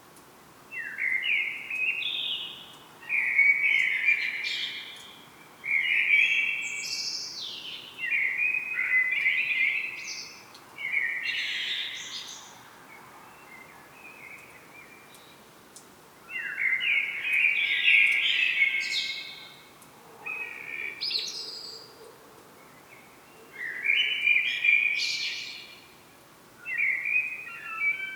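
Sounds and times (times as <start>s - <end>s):
common blackbird singing: 0.8s - 12.6s, 16.3s - 22.0s, 22.7s - 25.8s, 26.6s - 28.1s.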